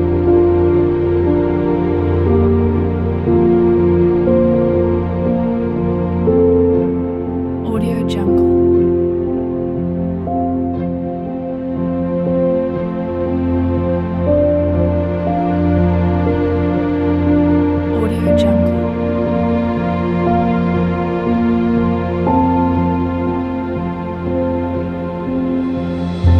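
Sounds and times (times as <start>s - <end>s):
piano: 0.0s - 26.3s.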